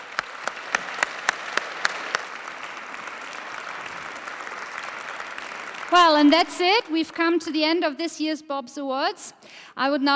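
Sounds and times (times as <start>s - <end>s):
audience applause: 0.0s - 6.1s
speech: 5.9s - 10.1s.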